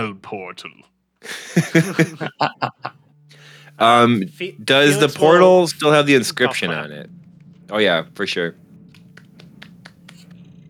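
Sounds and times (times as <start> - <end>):
speech: 0.0 - 8.6
low hum: 0.0 - 10.6
laughter: 1.2 - 3.0, 3.8 - 5.4
quiet golf clap: 8.9 - 10.3.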